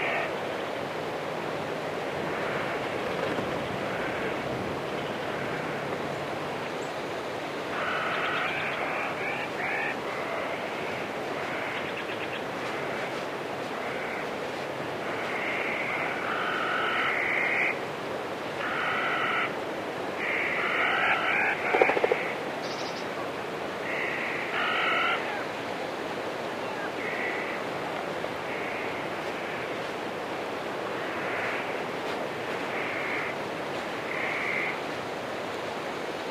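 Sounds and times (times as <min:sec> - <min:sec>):
water in a forest: 0:00.0 - 0:36.3
birds singing in a forest: 0:07.8 - 0:09.9, 0:20.8 - 0:23.1.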